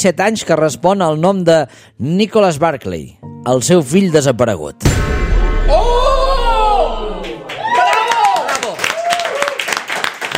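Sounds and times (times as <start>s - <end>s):
speech: 0.0s - 5.8s
crowd cheering and excited shouting: 5.5s - 9.6s
crowd clapping: 7.2s - 10.3s.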